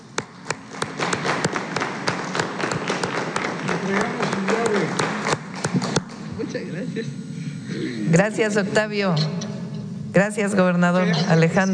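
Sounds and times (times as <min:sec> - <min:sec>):
audience applause: 0:00.4 - 0:06.2
speech: 0:06.5 - 0:09.4, 0:10.1 - 0:11.7.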